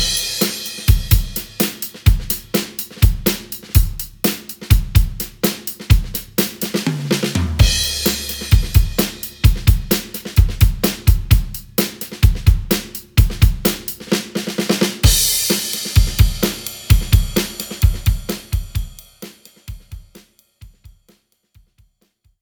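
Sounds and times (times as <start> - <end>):
funk music: 0.0 - 3.8, 6.0 - 14.1, 15.0 - 18.8.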